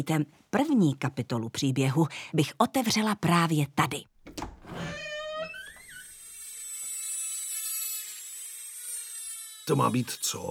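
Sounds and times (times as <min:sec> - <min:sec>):
speech: 0:00.0 - 0:04.5, 0:09.7 - 0:10.4
very old dentist's drill: 0:04.8 - 0:10.4.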